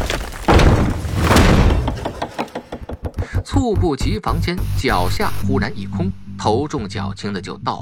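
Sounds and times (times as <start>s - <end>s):
heavy stone crashing down: 0.0s - 3.2s
speech: 3.6s - 7.8s.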